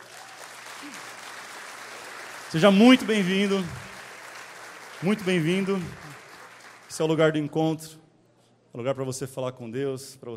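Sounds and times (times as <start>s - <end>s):
audience applause: 0.0s - 7.2s
speech: 2.5s - 3.8s, 5.0s - 6.2s, 6.9s - 8.0s, 8.7s - 10.3s.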